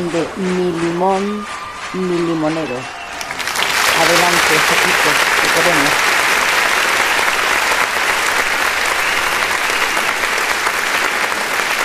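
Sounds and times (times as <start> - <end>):
speech: 0.0 - 3.0, 4.0 - 6.1
audience applause honoring a Sunday radio announcer: 2.9 - 11.8.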